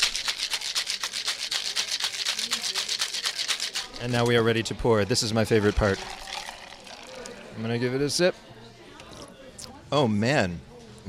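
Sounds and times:
cocktail shaker shaken vigorously: 0.0s - 4.3s, 5.6s - 7.4s
speech: 4.0s - 6.2s, 7.6s - 8.6s, 9.9s - 11.0s.

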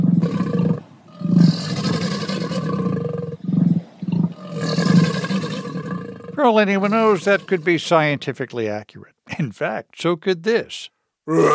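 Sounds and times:
alligator and emu calls blended together into deep rumbling roars: 0.0s - 6.4s
speech: 6.4s - 11.5s.

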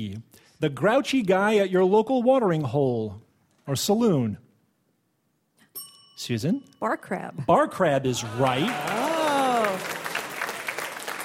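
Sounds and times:
speech: 0.0s - 4.4s, 6.2s - 9.0s
game show audience applause: 8.2s - 11.2s.

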